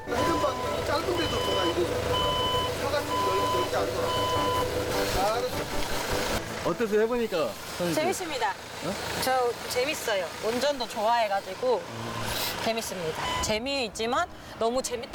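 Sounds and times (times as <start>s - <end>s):
forklift reversing beeps: 0.1s - 5.6s, 12.0s - 13.6s
speech: 6.7s - 15.1s.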